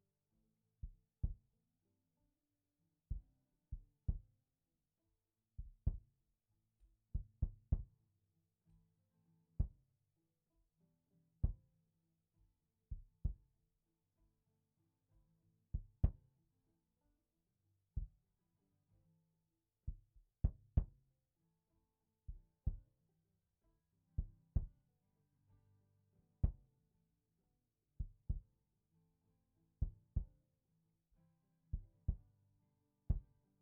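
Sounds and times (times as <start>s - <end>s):
kick drum: 0.8s - 1.5s, 3.1s - 4.4s, 5.6s - 6.2s, 7.2s - 8.0s, 9.6s - 9.9s, 11.4s - 11.7s, 12.9s - 13.5s, 15.8s - 16.3s, 18.0s - 18.2s, 19.9s - 21.0s, 22.3s - 23.0s, 24.2s - 24.9s, 26.4s - 26.7s, 28.0s - 28.6s, 29.8s - 30.4s, 31.7s - 32.4s, 33.1s - 33.4s.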